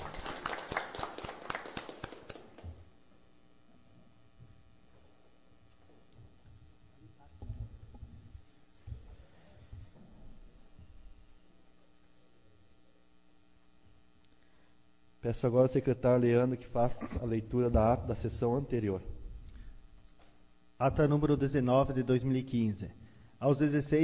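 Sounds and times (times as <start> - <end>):
group applause for a sworn-in councillor: 0.0 - 2.8
speech: 15.3 - 19.1, 20.8 - 24.0.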